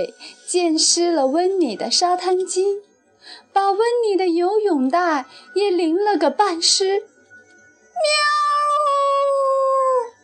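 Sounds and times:
speech: 0.0 - 7.1, 8.0 - 8.6
cat meowing in fright: 8.0 - 10.1.

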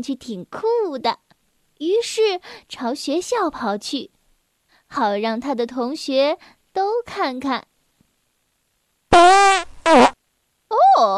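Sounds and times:
speech: 0.0 - 4.2, 4.9 - 7.7, 9.2 - 10.0
buzzy fart sounds: 9.1 - 10.2.

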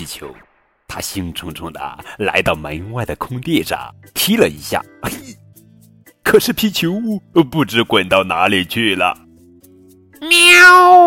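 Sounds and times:
speech: 0.0 - 5.4, 6.3 - 9.2, 10.2 - 11.0
cat meowing: 10.2 - 11.0.

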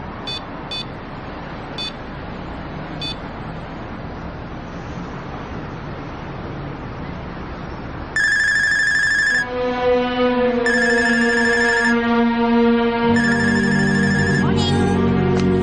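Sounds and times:
electronic telephone ringing unanswered: 8.2 - 9.5, 10.7 - 12.0, 13.2 - 14.7
low musical drone: 9.2 - 15.6.

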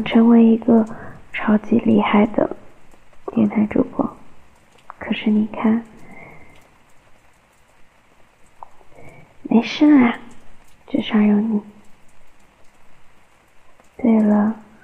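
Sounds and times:
speech: 0.0 - 2.6, 3.3 - 4.2, 5.0 - 5.9, 9.5 - 10.2, 10.9 - 11.7, 14.0 - 14.6
recorded rain falling: 0.0 - 14.8.

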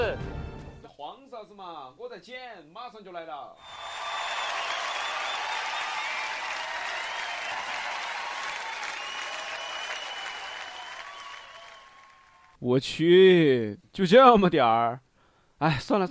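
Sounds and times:
speech: 1.0 - 4.0, 12.6 - 15.0, 15.6 - 16.1
crowd applause: 3.6 - 12.6.

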